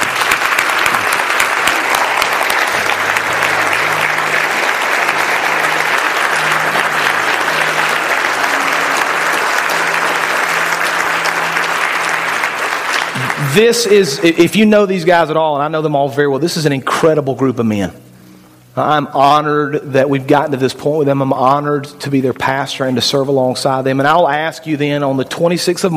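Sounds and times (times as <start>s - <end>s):
audience applause: 0.0s - 14.3s
speech: 13.5s - 18.0s, 18.8s - 25.9s.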